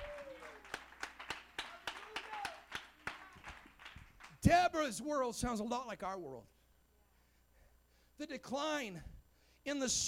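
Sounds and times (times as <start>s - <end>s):
audience rhythmic hand clapping: 0.0s - 4.4s
speech: 4.4s - 6.6s, 8.2s - 10.0s.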